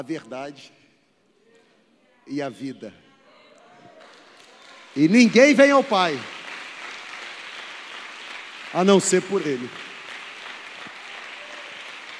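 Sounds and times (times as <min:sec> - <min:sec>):
speech: 0:00.0 - 0:00.8, 0:02.3 - 0:03.0, 0:05.0 - 0:06.4, 0:08.7 - 0:09.9
man speaking loudly: 0:02.3 - 0:03.0, 0:05.0 - 0:06.3, 0:08.7 - 0:09.8
audience applause in church: 0:04.0 - 0:12.1.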